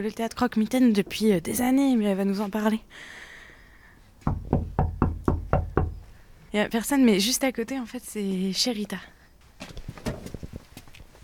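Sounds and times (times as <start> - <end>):
speech: 0.0 - 3.2, 4.2 - 4.6, 6.5 - 9.2
knocking on a wooden front door: 4.2 - 6.1.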